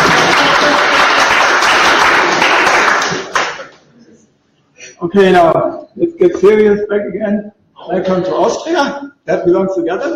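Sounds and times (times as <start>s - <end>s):
audience applause: 0.0s - 3.7s
speech: 5.1s - 10.1s.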